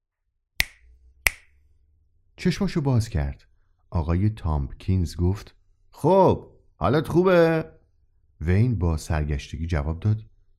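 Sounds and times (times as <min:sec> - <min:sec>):
finger snap: 0:00.6 - 0:01.5
speech: 0:02.4 - 0:07.8, 0:08.4 - 0:10.3.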